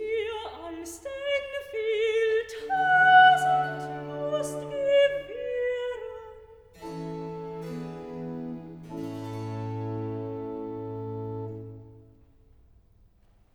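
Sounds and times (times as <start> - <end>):
soprano singing recitative: 0.0 - 7.0.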